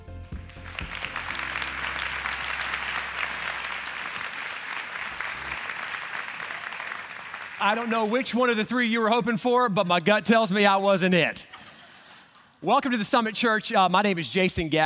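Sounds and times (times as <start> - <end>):
church congregation applause welcoming a pastor: 0.4 - 8.6
speech: 7.6 - 11.5, 12.6 - 14.8.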